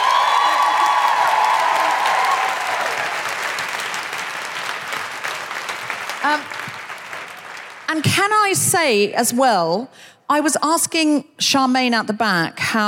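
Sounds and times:
audience applause: 0:00.0 - 0:08.0
speech: 0:06.3 - 0:06.6, 0:07.9 - 0:12.8.

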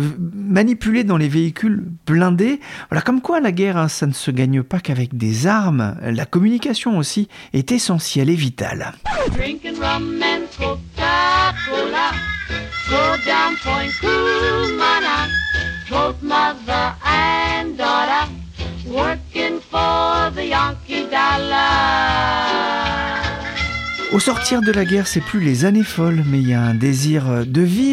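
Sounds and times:
speech: 0:00.0 - 0:23.4, 0:24.1 - 0:27.9
1940s vocal trio pop song recording: 0:09.1 - 0:24.4.

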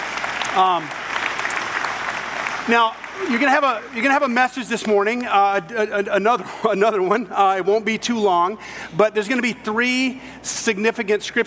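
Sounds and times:
audience applause: 0:00.0 - 0:04.7
speech: 0:00.6 - 0:01.0, 0:02.6 - 0:11.4.

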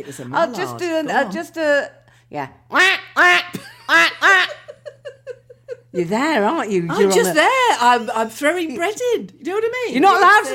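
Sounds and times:
speech: 0:00.0 - 0:04.4, 0:06.0 - 0:10.5
person imitating duck quacks: 0:02.7 - 0:04.5.

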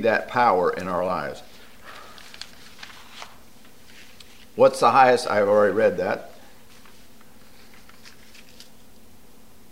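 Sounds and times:
speech: 0:00.0 - 0:01.6, 0:04.6 - 0:06.3
turning a page of notes: 0:00.7 - 0:04.8, 0:06.4 - 0:08.8.

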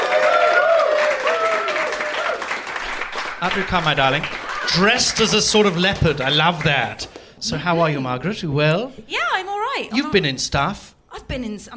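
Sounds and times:
live comedy show audience applauding to welcome a guest: 0:00.0 - 0:07.2
speech: 0:03.4 - 0:09.2, 0:09.8 - 0:11.7.

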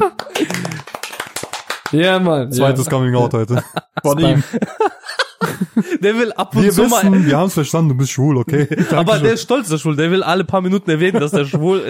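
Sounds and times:
laughter: 0:00.0 - 0:01.2, 0:03.4 - 0:07.6, 0:08.4 - 0:09.6, 0:10.9 - 0:11.8
hand clapping: 0:00.0 - 0:02.0
speech: 0:01.9 - 0:05.0, 0:05.8 - 0:11.8.

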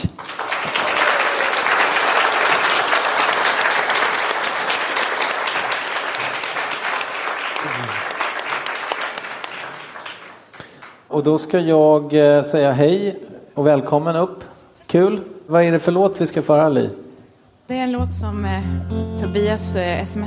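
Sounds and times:
audience applause: 0:00.0 - 0:10.9
speech: 0:11.2 - 0:17.0, 0:17.7 - 0:20.2.

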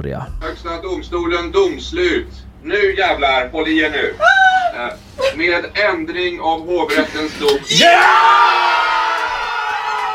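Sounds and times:
speech: 0:00.0 - 0:08.9
crowd cheering: 0:07.7 - 0:10.1.

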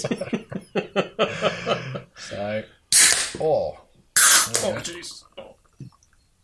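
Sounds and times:
laughter: 0:00.0 - 0:02.3
speech: 0:01.0 - 0:01.7
shaken can cracked open with a pop and spraying fizz: 0:04.2 - 0:04.8.

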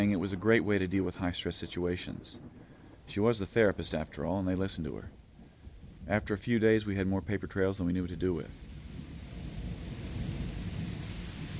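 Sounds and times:
heavy rain: 0:00.0 - 0:11.5
thunder rumbling: 0:00.0 - 0:11.5
speech: 0:00.2 - 0:05.2, 0:06.1 - 0:08.6.

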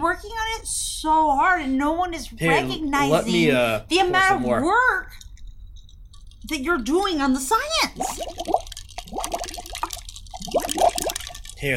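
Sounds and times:
speech: 0:00.1 - 0:05.2, 0:06.4 - 0:09.3
bubbles blown through a straw into a milkshake: 0:07.9 - 0:11.7.

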